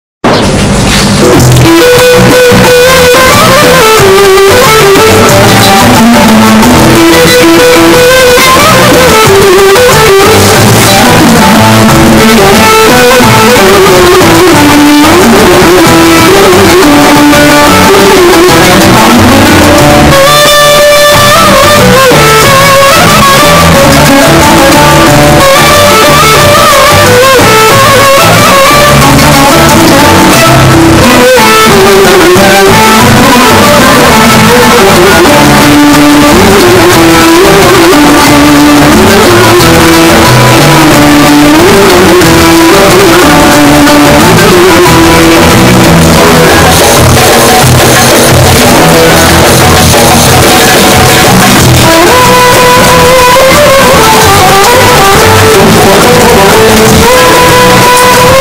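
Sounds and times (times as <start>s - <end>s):
distorted earrape background music: 0.2s - 58.3s.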